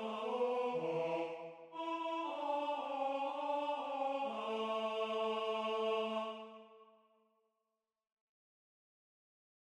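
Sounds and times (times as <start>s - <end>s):
tenor singing: 0.0s - 6.6s.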